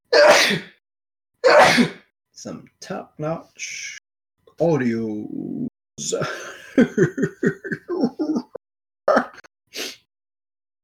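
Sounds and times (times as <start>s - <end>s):
speech: 0.5s - 0.7s, 1.8s - 4.0s, 4.6s - 8.4s
laughter: 6.2s - 8.6s
person sniffling from allergies: 9.7s - 10.1s.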